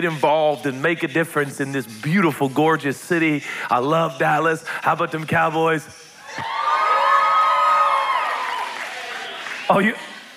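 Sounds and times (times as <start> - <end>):
speech: 0.0 - 6.6, 9.7 - 10.0
crowd cheering: 6.2 - 10.3.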